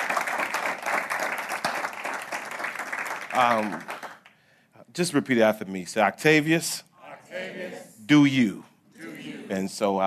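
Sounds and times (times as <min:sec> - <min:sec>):
audience applause: 0:00.0 - 0:04.3
speech: 0:03.4 - 0:03.9, 0:05.0 - 0:07.4, 0:08.1 - 0:08.7, 0:09.5 - 0:10.0.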